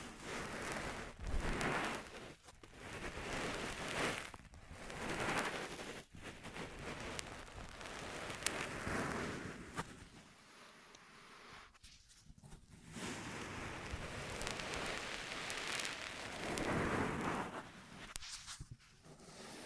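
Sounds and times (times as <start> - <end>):
ear massage rubbing: 0.2 - 9.3, 13.3 - 17.5.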